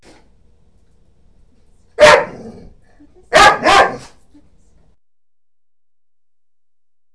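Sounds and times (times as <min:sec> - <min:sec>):
animal barking: 0:02.0 - 0:02.7, 0:03.3 - 0:04.2.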